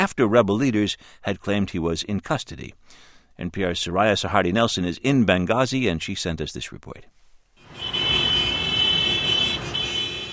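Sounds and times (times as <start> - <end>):
speech: 0.0 - 7.2
car horns honking in celebration in Benghazi: 7.6 - 10.3.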